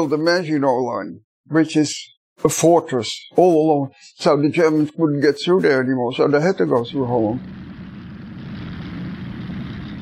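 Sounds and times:
speech: 0.0s - 7.6s
roaring aircraft engines: 7.4s - 10.0s.

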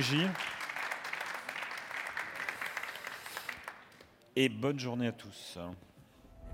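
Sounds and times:
speech: 0.0s - 0.5s, 4.4s - 5.9s
audience applause: 0.0s - 4.0s.

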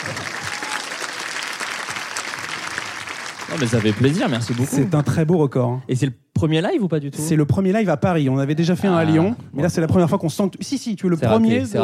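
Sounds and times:
live audience applauding: 0.0s - 5.2s
speech: 3.5s - 11.8s.

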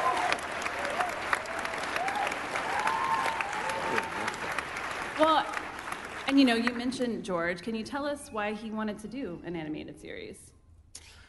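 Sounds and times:
crowd whoops and cheers: 0.0s - 4.6s
audience applause: 0.0s - 6.8s
speech: 6.4s - 10.5s.

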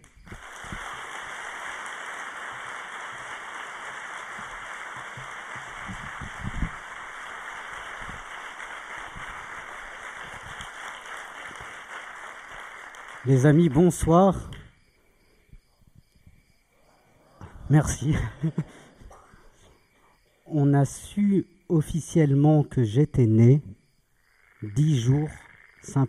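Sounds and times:
large crowd applauding loudly: 0.0s - 14.3s
speech: 13.2s - 14.6s, 17.7s - 18.9s, 20.6s - 23.7s, 24.6s - 26.0s
laughter: 18.0s - 19.2s.

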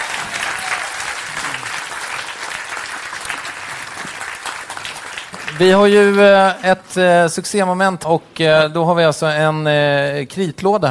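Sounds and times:
audience applause: 0.0s - 6.7s
speech: 5.6s - 10.9s.

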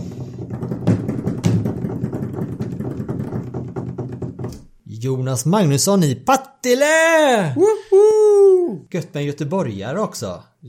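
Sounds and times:
drum roll: 0.0s - 4.6s
speech: 5.0s - 10.6s.

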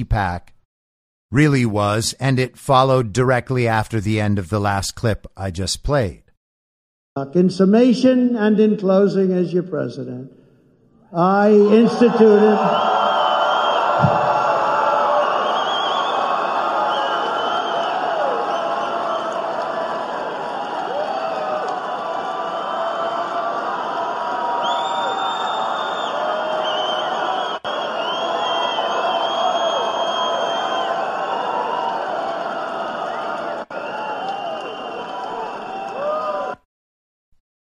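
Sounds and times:
speech: 0.0s - 0.5s, 1.3s - 6.2s, 7.2s - 10.4s, 11.1s - 13.0s
crowd applause and cheering at rally: 11.4s - 36.7s.

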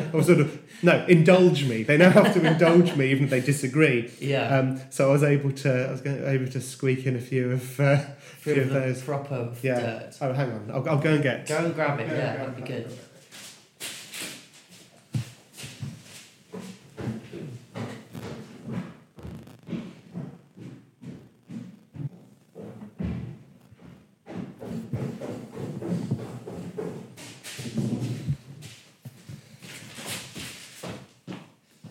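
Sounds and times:
speech: 0.1s - 13.1s
laughter: 1.6s - 4.0s
crunching footsteps on brown paper floor: 13.2s - 31.8s.

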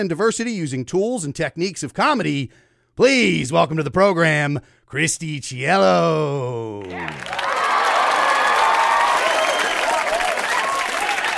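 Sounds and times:
speech: 0.0s - 7.4s
shrill whoops and cheers: 6.8s - 11.3s
studio audience applause: 6.8s - 11.3s.

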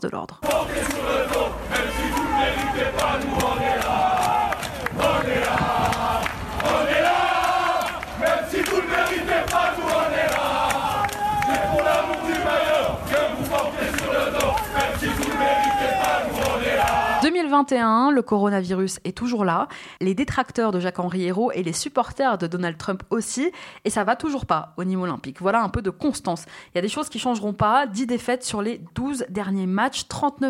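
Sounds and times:
speech: 0.0s - 4.1s, 17.4s - 30.4s
protesting football supporters chanting: 0.4s - 17.3s.

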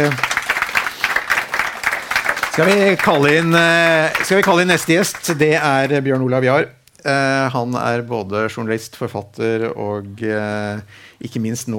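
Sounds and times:
speech: 0.0s - 0.3s, 2.6s - 11.7s
audience applause: 0.0s - 6.0s.

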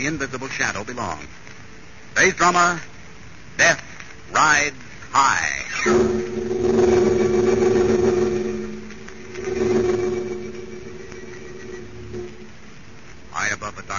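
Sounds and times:
speech: 0.0s - 1.5s, 2.1s - 2.9s, 3.6s - 6.2s
bomber aircraft engines droning in flight: 5.9s - 12.9s.

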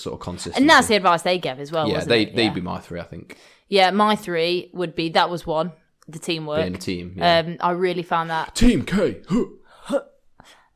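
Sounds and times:
speech: 0.0s - 10.1s
person coughing: 9.2s - 9.6s.

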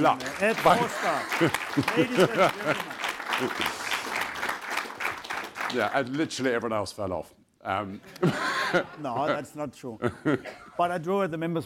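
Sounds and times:
speech: 0.0s - 3.8s, 5.7s - 11.6s
audience applause: 0.0s - 6.2s
laughter: 0.2s - 3.9s, 7.9s - 10.8s.

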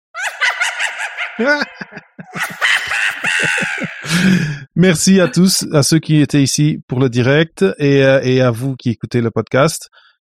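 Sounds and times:
Halloween witch cackle sound effect: 0.1s - 4.5s
speech: 1.4s - 2.0s, 4.2s - 10.0s.

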